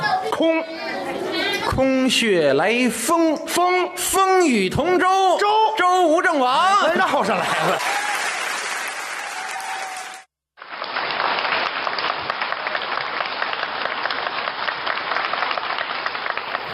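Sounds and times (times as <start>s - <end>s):
speech: 0.4s - 8.0s
laughter: 6.6s - 8.1s
audience applause: 7.1s - 16.7s.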